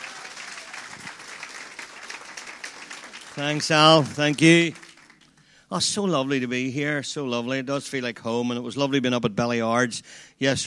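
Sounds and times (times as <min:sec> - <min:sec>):
crowd applause: 0:00.0 - 0:05.5
speech: 0:03.4 - 0:04.8, 0:05.7 - 0:10.6.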